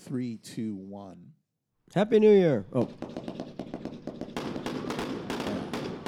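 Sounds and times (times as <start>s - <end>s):
speech: 0.1s - 3.3s
girandola firework crackling pops: 3.2s - 6.0s.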